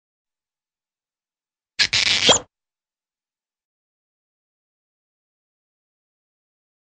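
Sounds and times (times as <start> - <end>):
popping sound: 1.8 - 2.4
high-pitched squeak: 1.8 - 2.5.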